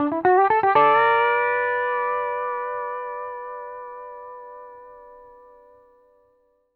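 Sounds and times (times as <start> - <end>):
country music loop at 120 BPM: 0.0 - 2.6.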